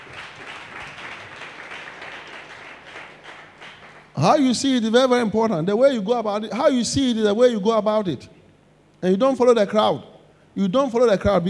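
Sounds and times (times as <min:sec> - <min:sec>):
audience clapping hands: 0:00.0 - 0:04.5
speech: 0:04.2 - 0:08.4, 0:09.0 - 0:11.4.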